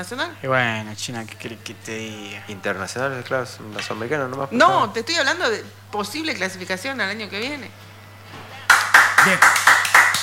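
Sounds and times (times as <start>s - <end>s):
speech: 0.0s - 7.9s, 9.2s - 9.6s
faint steady hum: 0.0s - 10.2s
rhythmic clapping in a studio: 8.6s - 10.2s.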